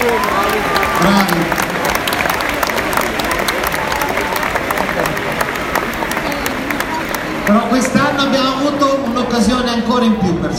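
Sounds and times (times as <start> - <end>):
audience applause: 0.0 - 9.1
speech: 9.4 - 10.5.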